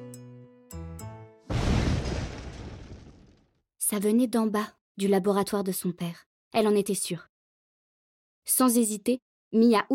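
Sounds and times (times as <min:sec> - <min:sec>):
deafening explosion shaking the walls: 0:01.5 - 0:03.5
speech: 0:03.9 - 0:07.3, 0:08.5 - 0:09.9.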